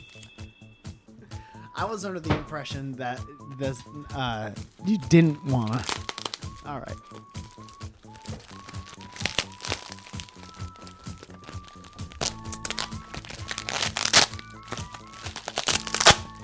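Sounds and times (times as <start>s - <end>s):
speech: 1.8s - 7.8s
heavily taped toy package being torn open: 4.6s - 16.4s.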